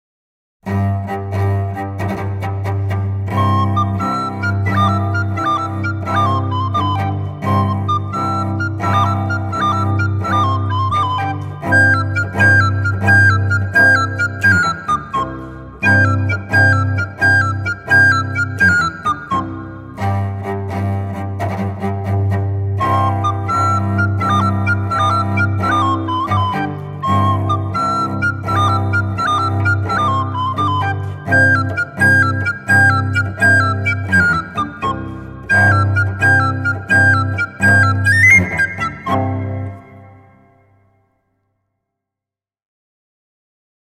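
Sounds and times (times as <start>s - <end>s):
duduk: 0.6s - 40.8s.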